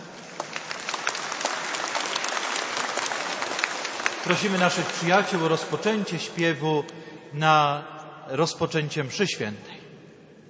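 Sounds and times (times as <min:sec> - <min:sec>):
audience applauding: 0:00.0 - 0:05.8
speech: 0:04.2 - 0:09.7.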